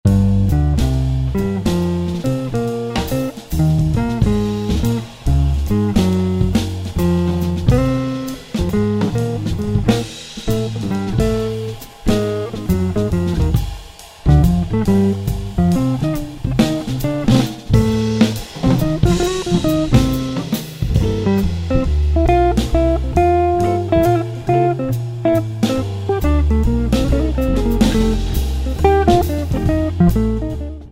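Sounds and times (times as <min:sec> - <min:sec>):
blues music: 0:00.1 - 0:30.9.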